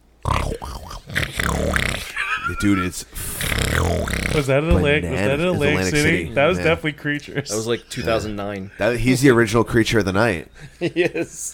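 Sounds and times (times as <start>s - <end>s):
voice imitating a person snoring: 0.0s - 6.7s
speech: 2.5s - 11.5s.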